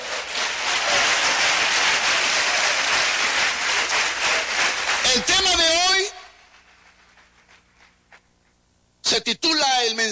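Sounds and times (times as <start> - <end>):
audience applause: 0.0 - 6.1
speech: 9.3 - 10.1.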